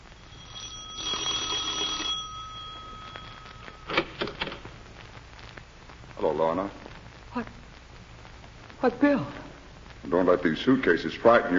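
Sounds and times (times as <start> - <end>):
buzzing electric doorbell ringing: 0.3 - 4.6
speech: 6.2 - 6.8, 7.4 - 7.6, 8.8 - 9.4, 10.0 - 11.5.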